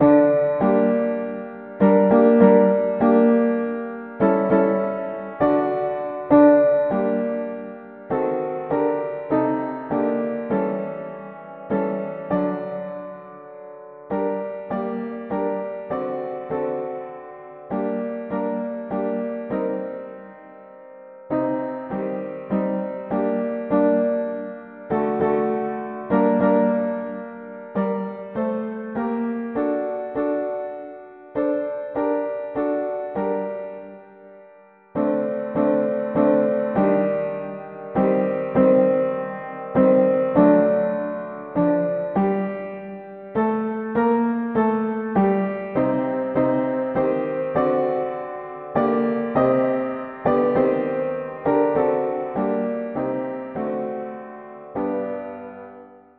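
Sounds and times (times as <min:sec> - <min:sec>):
mono piano: 0:00.0 - 0:56.1.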